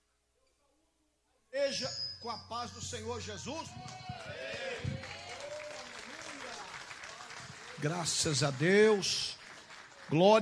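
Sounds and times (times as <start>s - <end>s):
speech: 1.6s - 4.9s, 7.8s - 9.4s, 10.1s - 10.4s
audience clapping: 3.8s - 10.4s.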